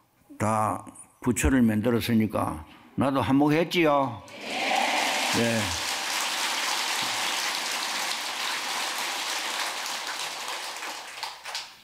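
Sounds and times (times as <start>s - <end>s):
speech: 0.4s - 5.8s
audience applause: 4.3s - 11.8s.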